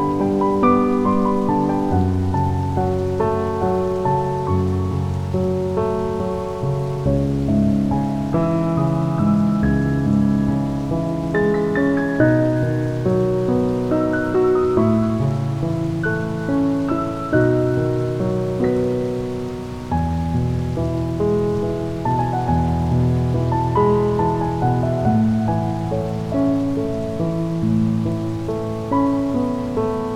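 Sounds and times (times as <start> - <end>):
piano: 0.0 - 30.1
rain: 0.0 - 30.1.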